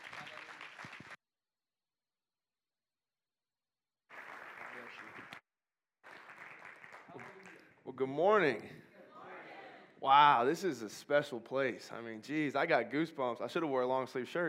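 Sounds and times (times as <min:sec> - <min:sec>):
audience applause welcoming a speaker: 0:00.0 - 0:01.2, 0:04.1 - 0:05.4, 0:06.0 - 0:07.7
speech: 0:08.0 - 0:08.8, 0:10.0 - 0:14.4.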